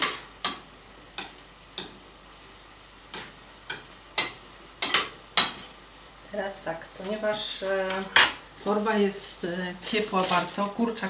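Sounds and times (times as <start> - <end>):
stirring kasotto in a frying pan: 0.0 - 11.0
speech: 6.3 - 11.0.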